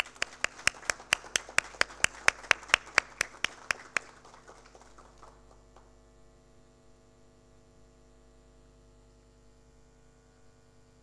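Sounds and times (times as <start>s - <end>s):
audience applause: 0.0s - 5.9s.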